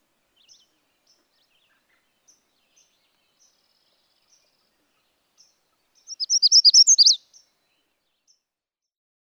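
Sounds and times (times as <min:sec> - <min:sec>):
Magnolia Warbler: 0:00.4 - 0:07.5.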